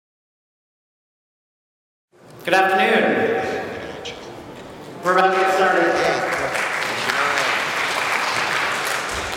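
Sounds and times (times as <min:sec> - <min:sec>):
speech: 0:02.4 - 0:03.6, 0:05.0 - 0:06.2
audience applauding: 0:05.3 - 0:09.3.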